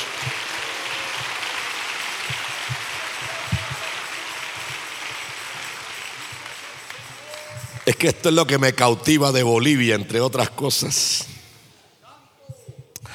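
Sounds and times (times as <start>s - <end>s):
audience applause: 0.0s - 9.8s
speech: 7.9s - 11.3s.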